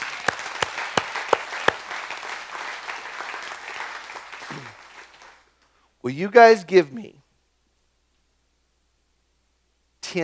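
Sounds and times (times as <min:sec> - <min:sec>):
audience applauding: 0:00.0 - 0:05.5
speech: 0:06.0 - 0:07.2.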